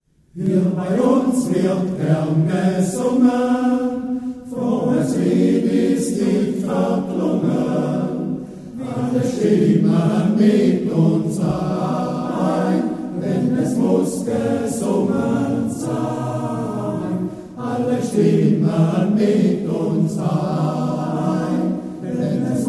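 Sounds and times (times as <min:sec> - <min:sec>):
men's choir singing: 0:00.4 - 0:22.6.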